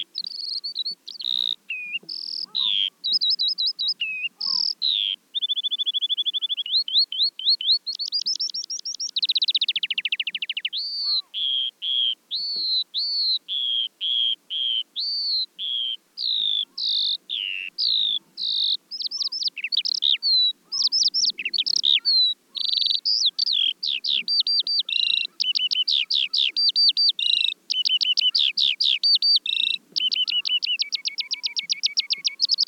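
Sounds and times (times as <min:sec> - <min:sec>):
Eurasian skylark singing: 0:00.0 - 0:32.6.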